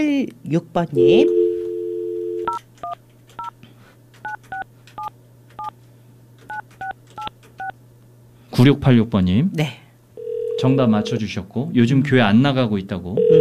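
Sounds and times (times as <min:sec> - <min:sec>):
speech: 0:00.0 - 0:01.4, 0:08.6 - 0:09.8, 0:10.6 - 0:13.3
dial tone: 0:01.0 - 0:02.6, 0:10.2 - 0:10.8, 0:13.2 - 0:13.3
phone keypad two-tone dialing beeps: 0:02.2 - 0:03.5, 0:04.2 - 0:05.7, 0:06.5 - 0:07.7.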